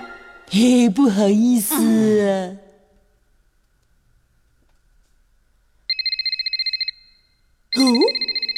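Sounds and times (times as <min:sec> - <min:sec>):
speech: 0:00.6 - 0:02.6
mobile phone ringtone ringing: 0:05.9 - 0:07.1, 0:07.8 - 0:08.5.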